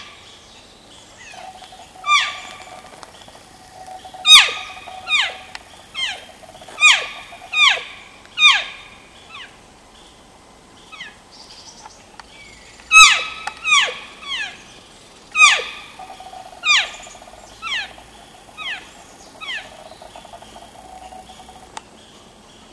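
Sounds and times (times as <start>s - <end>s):
elk calf calling while seeking: 1.3s - 8.8s, 15.4s - 21.8s.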